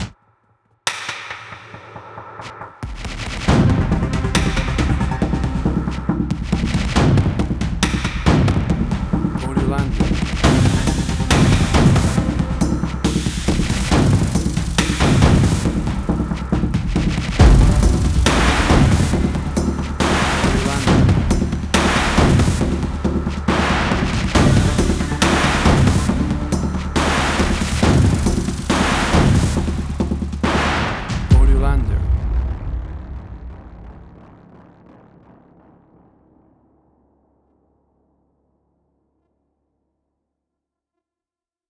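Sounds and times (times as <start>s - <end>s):
electronic music at 138 bpm: 1.5s - 32.2s.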